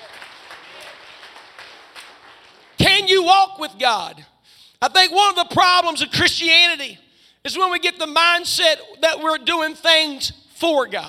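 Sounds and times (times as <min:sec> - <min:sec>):
audience clapping hands: 0:00.0 - 0:03.1
speech: 0:03.3 - 0:11.0.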